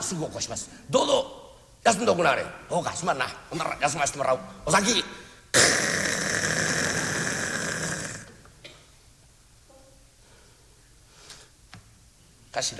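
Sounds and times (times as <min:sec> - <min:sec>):
speech: 0:00.1 - 0:05.2, 0:12.6 - 0:12.7
voice imitating a snore: 0:05.5 - 0:08.4.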